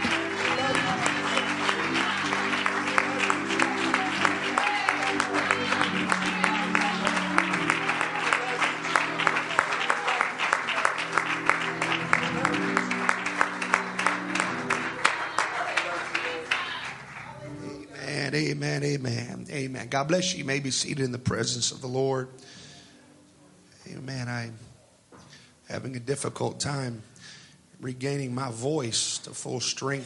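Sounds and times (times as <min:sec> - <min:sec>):
audience applause: 0:00.0 - 0:17.8
sustained organ or keyboard chords: 0:00.0 - 0:22.6
speech: 0:19.9 - 0:22.5, 0:26.0 - 0:27.2, 0:27.8 - 0:30.0.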